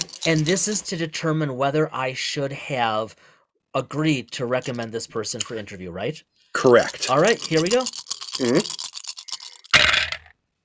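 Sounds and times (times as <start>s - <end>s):
dice rolling: 0.0s - 0.9s, 6.8s - 10.3s
speech: 0.2s - 8.8s.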